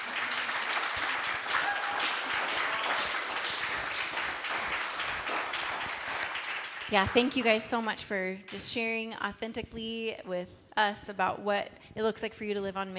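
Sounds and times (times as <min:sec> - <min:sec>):
audience round of applause: 0:00.0 - 0:07.6
speech: 0:06.9 - 0:12.9.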